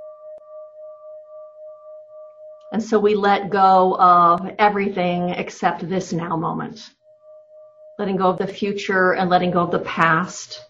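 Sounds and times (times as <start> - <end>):
meditation bell ringing: 0.0 - 2.7, 7.0 - 8.0
speech: 2.7 - 7.0, 8.0 - 10.6.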